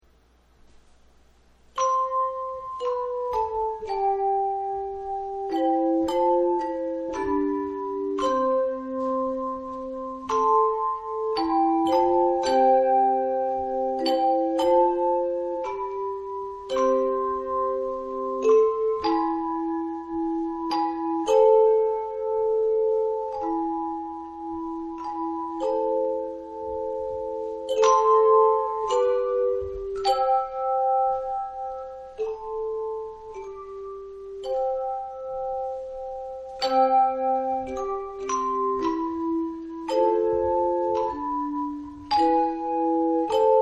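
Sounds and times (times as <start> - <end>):
chimes: 1.7 - 43.5.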